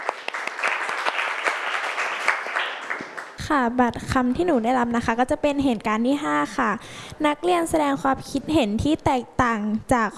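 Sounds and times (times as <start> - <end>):
classroom students clapping: 0.0 - 3.4
speech: 3.5 - 10.1.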